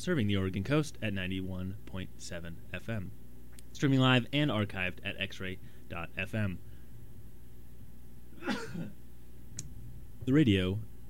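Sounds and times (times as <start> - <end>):
speech: 0.0 - 3.2, 3.8 - 6.7, 8.4 - 9.0, 10.3 - 10.9
off-microphone sneeze: 8.4 - 9.0.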